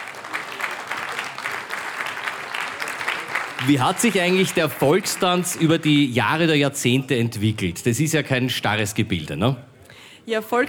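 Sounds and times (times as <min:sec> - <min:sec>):
audience applause: 0:00.0 - 0:07.0
speech: 0:03.6 - 0:09.7, 0:10.3 - 0:10.6.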